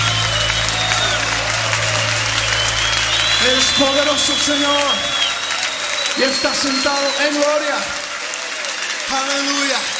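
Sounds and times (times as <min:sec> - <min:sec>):
church congregation applauding during worship: 0:00.0 - 0:09.9
speech: 0:03.5 - 0:05.2, 0:06.2 - 0:08.0, 0:09.1 - 0:09.9.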